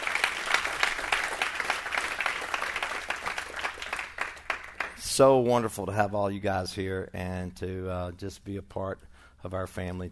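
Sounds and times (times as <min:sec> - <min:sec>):
audience hand clapping: 0:00.0 - 0:05.2
speech: 0:05.2 - 0:10.1.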